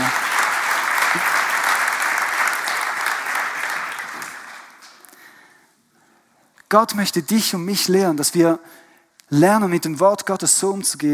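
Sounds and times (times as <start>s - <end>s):
audience applause: 0.0s - 5.1s
speech: 6.7s - 11.1s.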